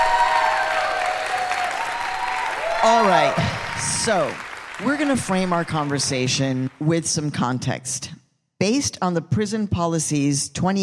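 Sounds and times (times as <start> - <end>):
audience applause welcoming a prison reform activist: 0.0 - 6.9
speech: 2.8 - 10.8.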